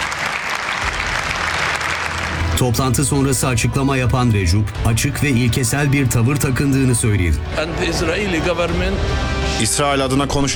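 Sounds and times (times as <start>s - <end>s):
audience in a congress hall applauding the Palestinian president: 0.0s - 3.2s
speech: 2.6s - 10.5s.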